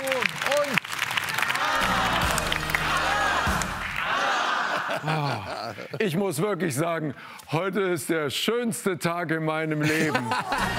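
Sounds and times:
cheers: 0.0 - 5.1
audience applause: 0.0 - 5.4
laughter: 4.0 - 6.2, 9.8 - 10.7
speech: 5.0 - 10.7.

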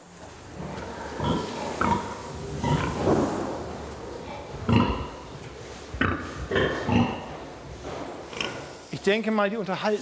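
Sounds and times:
sows grunting in a farrowing barn: 0.5 - 3.5, 4.6 - 5.3, 6.0 - 7.4
speech: 9.0 - 10.0.

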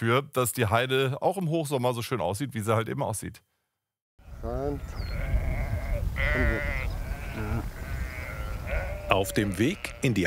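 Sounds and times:
speech: 0.0 - 3.5, 4.4 - 5.3, 6.2 - 6.8, 9.1 - 10.2
low rumble of the moving sheep herd: 4.4 - 10.2
flock of sheep bleating on the heath at Morsum Cliff on Sylt: 4.8 - 10.2.

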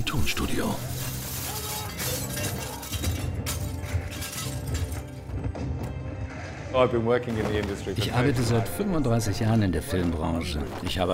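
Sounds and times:
speech: 0.1 - 1.0, 6.8 - 11.1
glass roof shattering, film sound effect: 0.8 - 5.2.

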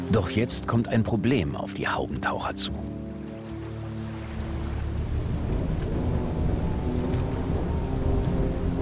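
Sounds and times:
speech: 0.1 - 3.0
steady rain over a lake: 4.3 - 8.8
thunder rumbling over a lake: 4.4 - 8.8.

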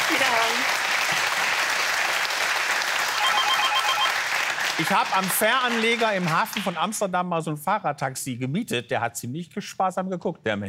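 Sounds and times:
crowd applause: 0.0 - 6.9
repeating electronic tone: 3.2 - 4.1
speech: 4.8 - 10.6.

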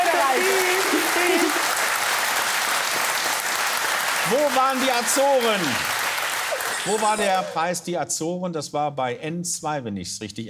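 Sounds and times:
studio audience applause: 0.0 - 7.8
speech: 4.3 - 5.9, 6.8 - 10.4.

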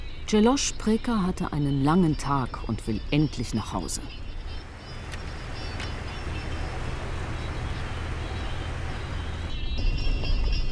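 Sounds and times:
speech: 0.3 - 4.2
thin high engine whine: 4.2 - 9.5
four-wheel-drive off-road car driving over bumpy ground: 4.3 - 10.6.

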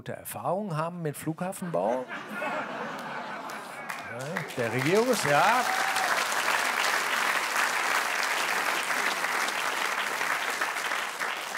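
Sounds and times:
speech: 0.0 - 2.8, 4.1 - 6.0
laughter: 1.5 - 6.1
audience applause: 2.6 - 11.5.

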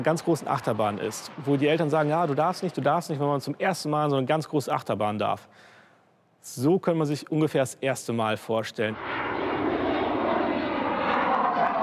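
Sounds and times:
aircraft engine roaring during a low-level training flight over sea and land: 0.0 - 3.6, 8.9 - 11.8
speech: 0.0 - 5.8, 6.4 - 9.2.

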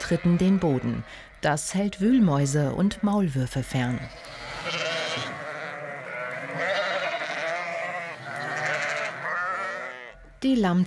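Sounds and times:
flock of sheep bleating on a dike: 0.0 - 1.1, 4.0 - 10.2
speech: 0.1 - 5.3, 10.4 - 10.8.

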